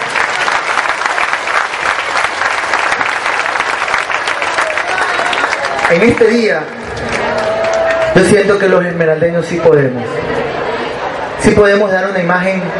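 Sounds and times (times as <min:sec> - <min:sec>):
loud crowd applause: 0:00.0 - 0:08.8
faint murmur of voices: 0:04.4 - 0:12.7
speech: 0:05.9 - 0:07.1, 0:08.2 - 0:10.4, 0:11.4 - 0:12.7.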